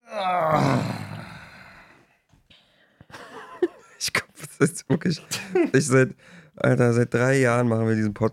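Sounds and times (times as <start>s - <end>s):
person groaning with strain: 0.0s - 1.9s
laughter: 3.1s - 5.9s
speech: 4.6s - 8.3s.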